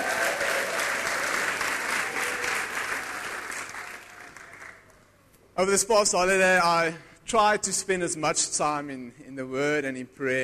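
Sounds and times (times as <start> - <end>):
audience clapping hands: 0.0 - 5.0
speech: 5.6 - 10.4.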